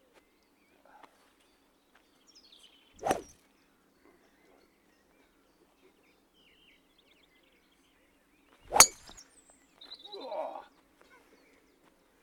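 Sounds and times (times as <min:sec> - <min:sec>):
golf tee shot: 0:03.0 - 0:03.3, 0:08.7 - 0:09.2.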